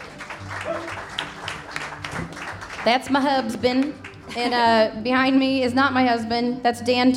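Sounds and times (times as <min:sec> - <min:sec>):
audience round of applause: 0:00.0 - 0:04.5
speech: 0:02.8 - 0:07.1.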